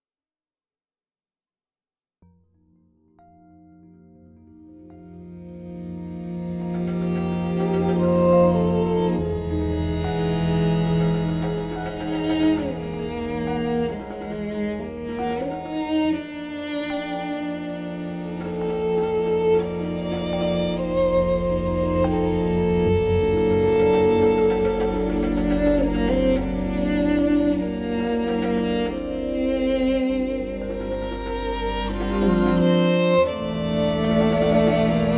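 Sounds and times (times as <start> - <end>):
remix track: 6.2 - 29.4, 30.5 - 35.1.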